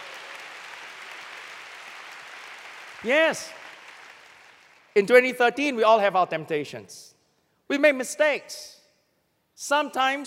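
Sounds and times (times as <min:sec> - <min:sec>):
audience clapping: 0:00.0 - 0:05.0
speech: 0:03.0 - 0:03.6, 0:05.0 - 0:07.1, 0:07.7 - 0:08.8, 0:09.6 - 0:10.2.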